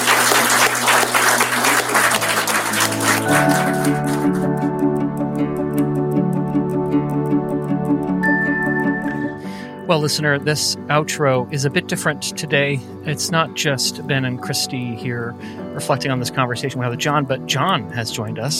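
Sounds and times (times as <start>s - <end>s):
crowd applause: 0.0s - 4.7s
music with sustained tones and a ticking rhythmic beat: 3.2s - 9.4s
speech: 9.9s - 18.5s.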